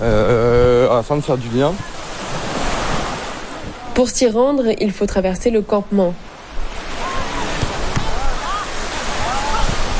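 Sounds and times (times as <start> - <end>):
waves washing onto a black sand beach: 0.0 - 4.2, 6.2 - 9.9
speech: 1.0 - 2.0, 4.0 - 6.2.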